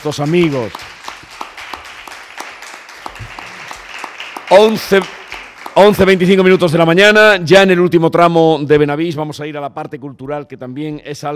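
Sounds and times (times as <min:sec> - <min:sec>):
speech: 0:00.0 - 0:01.0, 0:04.5 - 0:05.2, 0:05.8 - 0:11.3
applause: 0:00.0 - 0:07.2.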